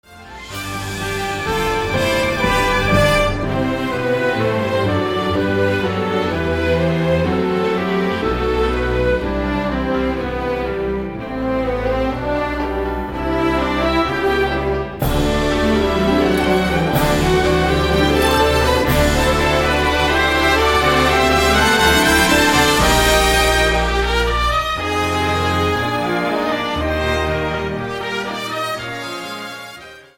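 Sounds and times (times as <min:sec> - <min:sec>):
overture: 0:00.0 - 0:30.1.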